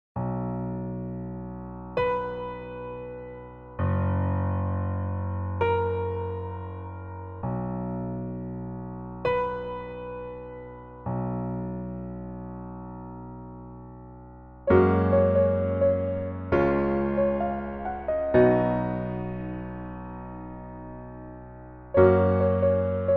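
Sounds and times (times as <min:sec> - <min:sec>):
piano melody backing track: 0:00.2 - 0:23.1.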